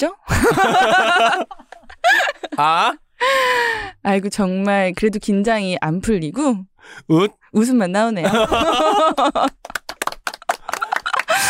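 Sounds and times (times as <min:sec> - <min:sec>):
speech: 0:00.0 - 0:09.8
laughter: 0:00.3 - 0:02.9, 0:08.2 - 0:09.7, 0:10.3 - 0:11.4
applause, people clapping: 0:08.3 - 0:11.4.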